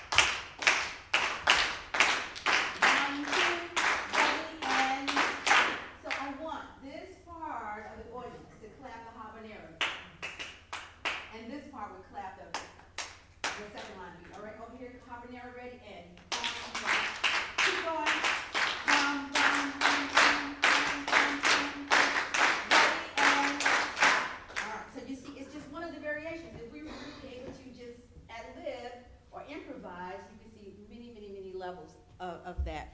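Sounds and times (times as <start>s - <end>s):
hand claps beating a second line rhythm: 0.0s - 6.4s, 9.8s - 11.4s, 12.5s - 14.4s, 16.2s - 24.9s.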